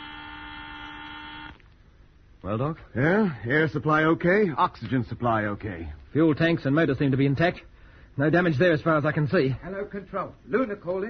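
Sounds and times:
spaceship alarm buzzer: 0.0s - 1.6s
speech: 2.4s - 11.0s.

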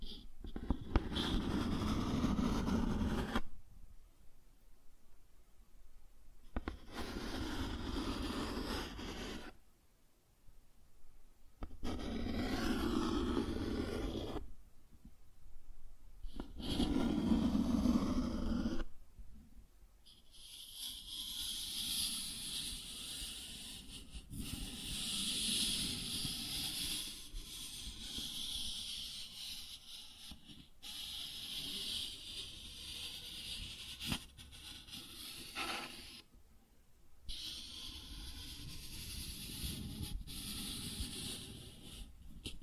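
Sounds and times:
cardboard being scratched and rubbed: 0.1s - 3.5s, 6.6s - 9.6s, 11.6s - 14.4s, 16.3s - 18.9s, 20.1s - 36.2s, 37.3s - 42.6s.

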